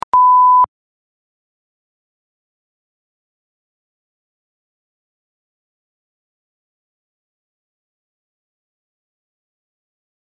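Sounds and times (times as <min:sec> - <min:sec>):
beep: 0:00.0 - 0:00.7.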